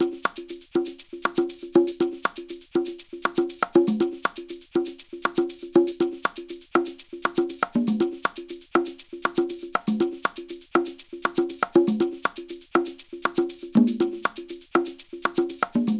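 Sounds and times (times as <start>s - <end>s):
conga playing in nu jazz house style: 0.0s - 15.9s.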